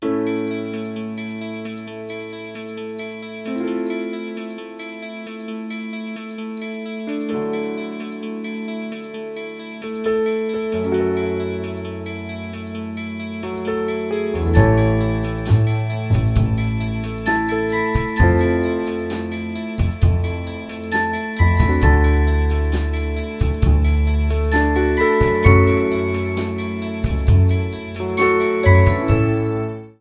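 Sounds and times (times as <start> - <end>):
guitar: 0.0 - 29.9.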